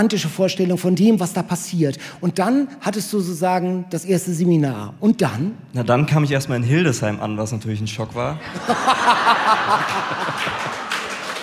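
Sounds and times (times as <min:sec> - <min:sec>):
speech: 0:00.0 - 0:10.8
laughter: 0:08.4 - 0:11.4
hesitant scattered applause from a small crowd: 0:09.4 - 0:11.4.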